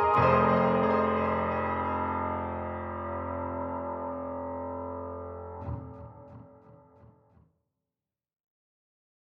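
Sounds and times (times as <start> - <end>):
grand piano with chorus echo: 0.0 - 7.2.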